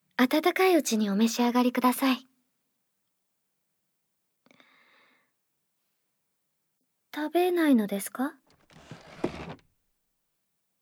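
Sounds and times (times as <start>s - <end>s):
speech: 0.2s - 2.3s, 7.2s - 8.4s
chair being pulled out from a table: 8.7s - 9.6s.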